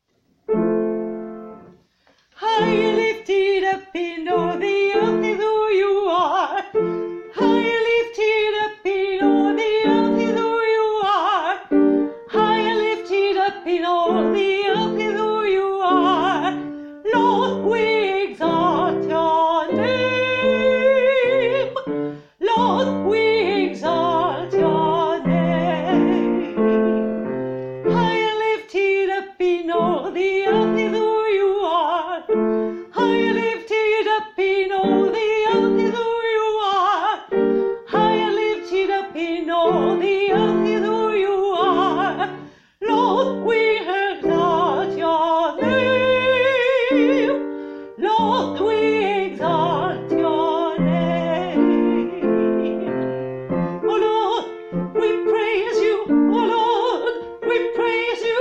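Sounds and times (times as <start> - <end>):
soprano singing: 2.4 - 58.3.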